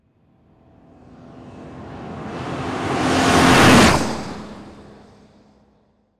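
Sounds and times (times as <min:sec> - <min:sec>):
Mercedes passing quickly: 0:00.6 - 0:05.5.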